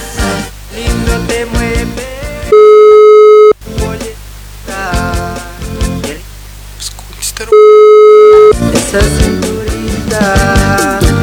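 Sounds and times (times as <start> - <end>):
voices talking: 0.0 - 11.2
telephone ringback tone of an unanswered call: 2.5 - 3.6, 7.5 - 8.7.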